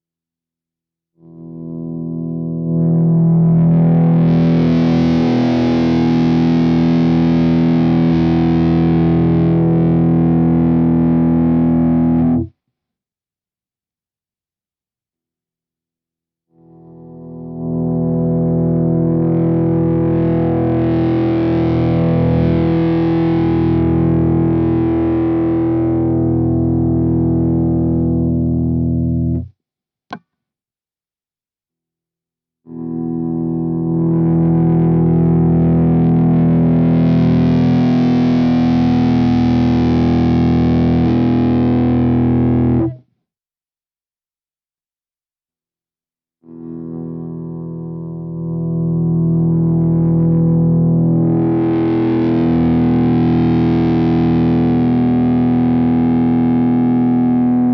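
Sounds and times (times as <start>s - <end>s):
Cort KX 500 with both pickups: 1.2s - 12.6s, 16.5s - 29.5s, 32.7s - 43.1s, 46.4s - 57.7s.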